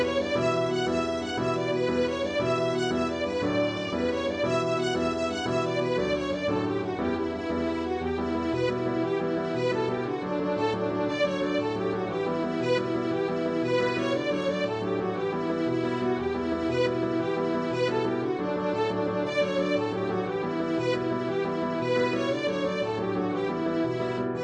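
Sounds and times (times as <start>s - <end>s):
folk jig tune: 0.0s - 24.4s.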